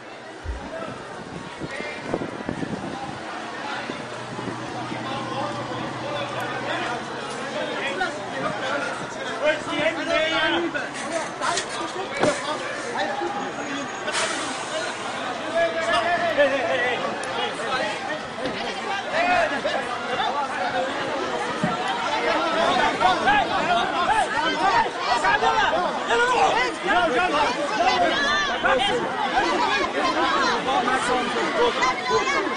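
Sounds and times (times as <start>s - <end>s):
demonstrating crowd chatter: 0.0s - 32.5s
city bus engine drone: 2.3s - 9.2s.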